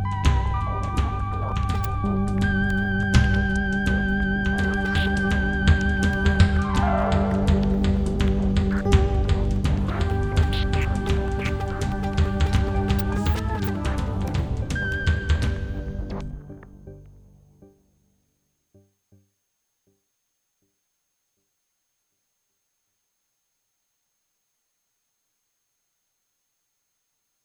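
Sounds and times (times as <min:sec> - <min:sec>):
instrumental music: 0:00.0 - 0:18.0.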